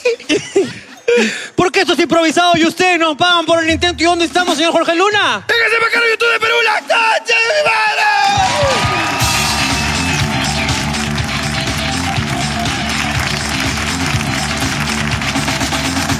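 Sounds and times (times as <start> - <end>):
laughter: 0.0 - 1.5
speech: 2.0 - 7.8
audience applause: 8.2 - 16.1.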